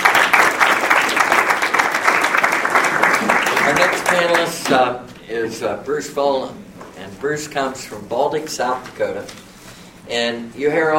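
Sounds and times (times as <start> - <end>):
round of applause: 0.0 - 4.8
speech: 4.1 - 9.4, 10.1 - 10.9.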